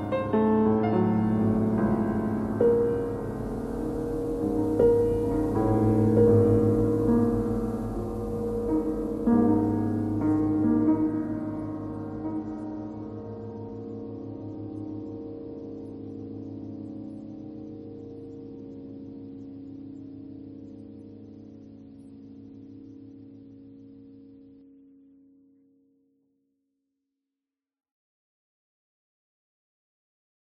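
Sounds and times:
piano noise: 0.0 - 19.2.

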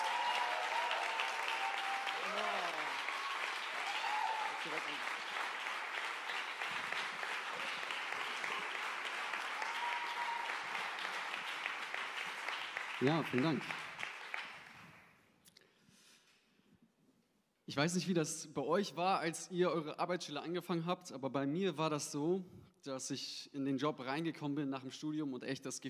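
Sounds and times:
audience applause: 0.0 - 14.8
speech: 4.6 - 5.2, 13.0 - 13.8, 17.7 - 25.8.

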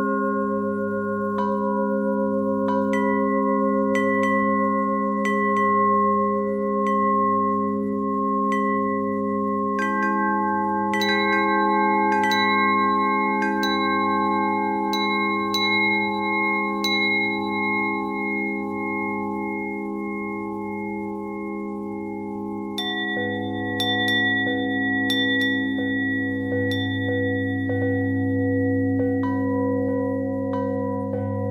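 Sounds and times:
bells playing a pentatonic melody: 0.0 - 31.4.

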